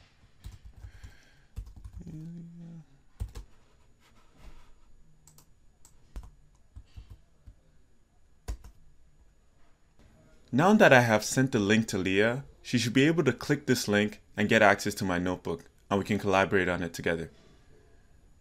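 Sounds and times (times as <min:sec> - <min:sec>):
typing a message on a computer keyboard: 0:00.4 - 0:02.2, 0:03.2 - 0:03.5, 0:05.3 - 0:07.2, 0:08.5 - 0:08.8
speech: 0:10.5 - 0:17.4.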